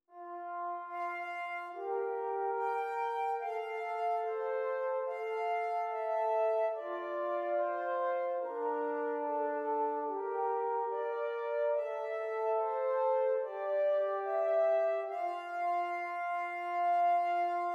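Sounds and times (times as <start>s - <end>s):
two-voice counterpoint exercises: 0.1s - 17.7s.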